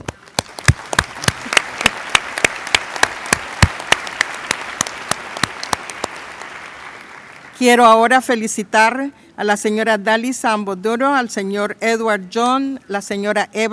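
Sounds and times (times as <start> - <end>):
applause at the tenth session of a permanent forum: 0.0 - 7.5
low noise: 0.0 - 13.7
speech: 7.6 - 13.7.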